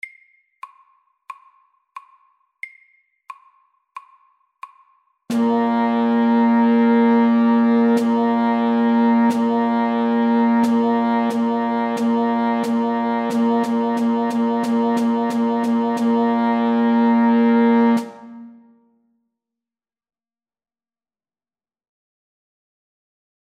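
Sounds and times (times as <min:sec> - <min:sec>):
rhythm in three beats per bar: 0:00.0 - 0:18.4.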